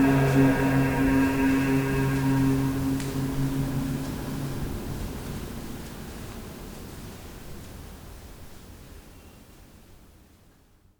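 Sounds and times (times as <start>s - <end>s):
person chanting in a cave: 0.0s - 5.0s.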